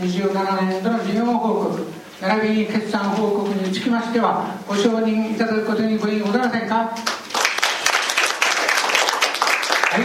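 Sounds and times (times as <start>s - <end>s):
speech: 0.0s - 7.2s
applause at a meeting: 7.0s - 10.0s.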